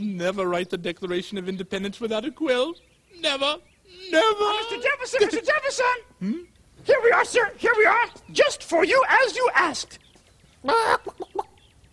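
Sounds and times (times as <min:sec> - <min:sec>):
speech: 0:00.0 - 0:10.0, 0:10.6 - 0:11.1
chicken squawking and clucking: 0:10.6 - 0:11.6.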